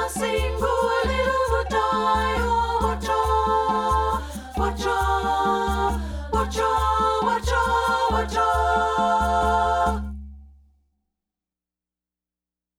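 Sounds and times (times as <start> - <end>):
soprano singing: 0.0 - 10.1.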